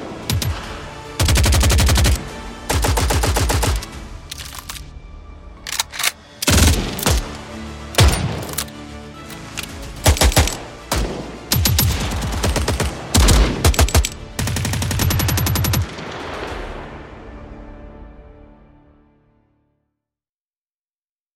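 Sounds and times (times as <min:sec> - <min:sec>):
World War II firearms: 0:00.2 - 0:04.9, 0:05.7 - 0:07.4, 0:08.0 - 0:16.5.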